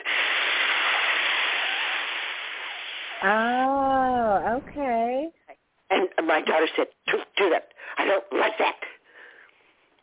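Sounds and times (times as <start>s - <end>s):
person hissing through teeth: 0.0s - 3.7s
speech: 3.2s - 5.4s, 6.0s - 8.9s.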